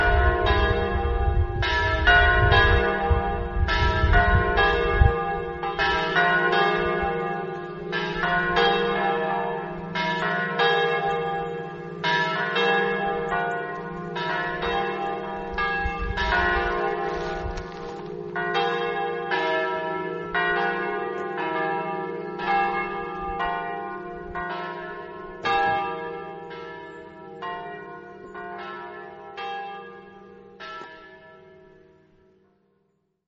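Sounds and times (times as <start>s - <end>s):
bells in Torviscosa: 0.0s - 31.9s.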